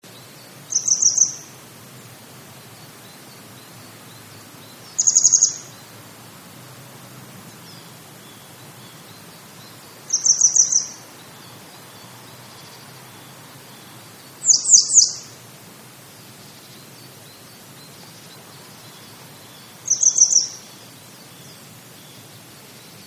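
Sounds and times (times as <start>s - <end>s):
low steady hiss: 0.0s - 23.0s
grey wagtail calling: 0.7s - 1.5s, 4.7s - 6.0s, 7.6s - 15.4s, 17.9s - 20.9s.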